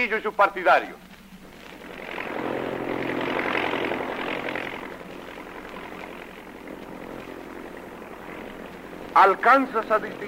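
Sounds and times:
speech: 0:00.0 - 0:01.1, 0:09.2 - 0:10.2
airplane engine flying overhead: 0:00.0 - 0:10.2.

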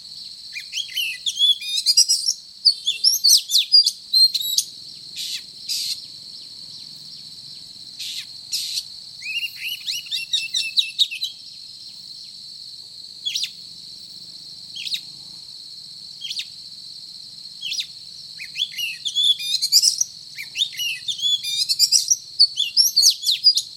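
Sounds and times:
Oriental magpie-robin singing: 0:00.6 - 0:06.0, 0:08.0 - 0:11.4, 0:17.7 - 0:23.7.

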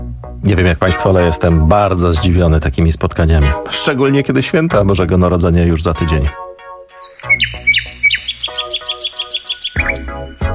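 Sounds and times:
speech: 0:00.4 - 0:06.4
bird song: 0:06.9 - 0:10.5.

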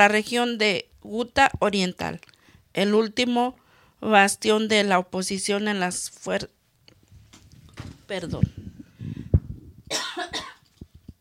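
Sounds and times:
speech: 0:00.0 - 0:06.6, 0:07.8 - 0:09.2
ill woman coughing in the morning: 0:09.9 - 0:10.6.

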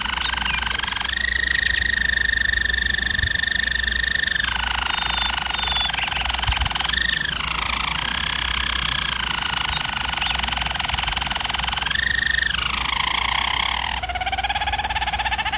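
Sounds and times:
German Roller canary song: 0:00.0 - 0:15.5
low background hum: 0:00.0 - 0:15.5.

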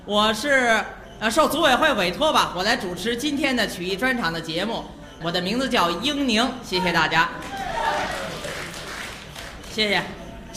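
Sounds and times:
speech: 0:00.0 - 0:08.2, 0:09.8 - 0:10.5
small crowd sparse clapping: 0:07.4 - 0:09.8.

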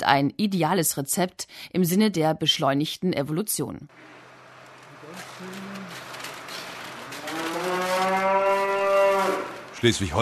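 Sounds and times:
speech: 0:00.0 - 0:04.2, 0:09.8 - 0:10.2
cattle mooing in calving barn: 0:07.0 - 0:09.8.

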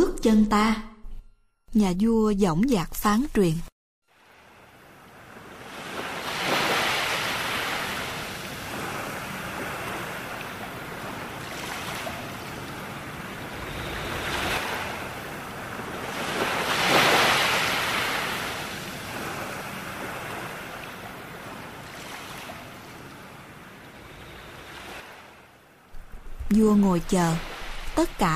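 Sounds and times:
speech: 0:00.2 - 0:00.9, 0:01.7 - 0:03.7, 0:26.6 - 0:28.3
ocean waves breaking on sandy shore: 0:04.1 - 0:26.2.

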